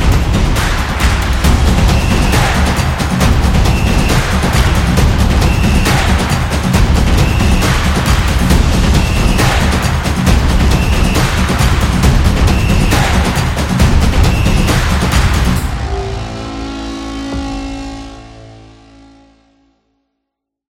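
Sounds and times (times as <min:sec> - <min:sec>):
soccer stadium crowd percussion: 0:00.0 - 0:16.0.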